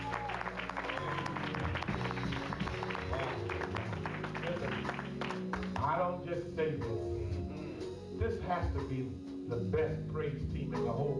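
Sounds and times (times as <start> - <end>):
large audience applause: 0.0 - 5.8
sustained low musical tones: 0.0 - 11.1
speech: 6.3 - 7.2, 8.2 - 11.1.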